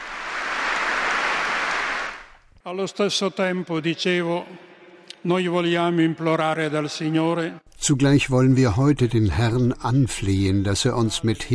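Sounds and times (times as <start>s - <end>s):
cardinals clapping at a Mass: 0.0s - 2.4s
speech: 2.6s - 11.5s.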